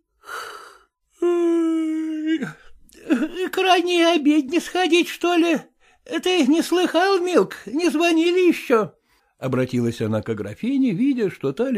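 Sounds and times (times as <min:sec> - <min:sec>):
day-labourer washerwoman yawning loudly getting up from her bunk: 0:00.2 - 0:03.2
speech: 0:02.4 - 0:02.6, 0:03.6 - 0:11.7.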